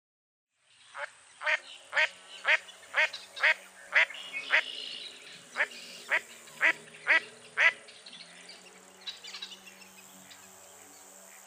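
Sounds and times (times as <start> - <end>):
Common goldeneye rasping calls: 1.0 - 7.8.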